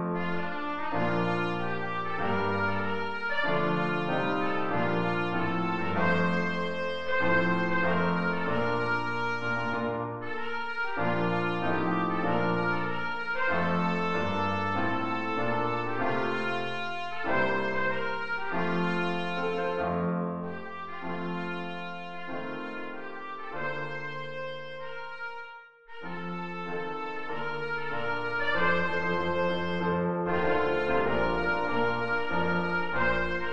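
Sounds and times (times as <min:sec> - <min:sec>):
national anthem: 0:00.1 - 0:25.5, 0:26.1 - 0:33.5.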